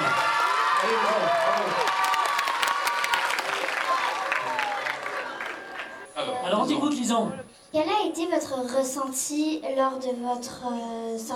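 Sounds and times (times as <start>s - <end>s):
audience applauding: 0.0s - 6.1s
speech: 0.8s - 2.0s, 6.5s - 11.3s.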